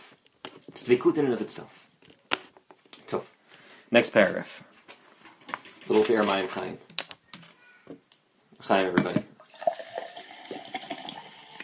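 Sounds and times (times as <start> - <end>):
speech: 0.9 - 1.8, 3.1 - 3.3, 3.9 - 4.7, 5.9 - 6.9, 8.6 - 9.3
seltzer water fizzing: 9.4 - 11.6.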